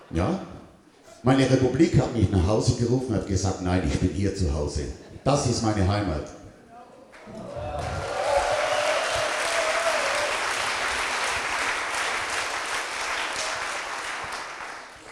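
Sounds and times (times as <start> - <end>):
speech: 0.1 - 0.6, 1.2 - 6.4
audience applause: 7.1 - 15.0.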